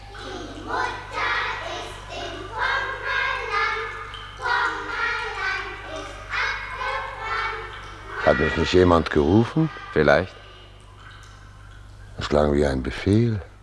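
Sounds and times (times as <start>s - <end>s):
children playing and singing a round song: 0.0s - 10.8s
speech: 8.3s - 10.4s, 12.3s - 13.5s.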